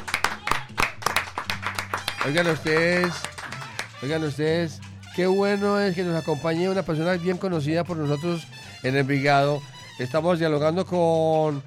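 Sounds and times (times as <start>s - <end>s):
audience applause: 0.0s - 4.0s
speech: 2.2s - 3.3s, 4.0s - 11.6s.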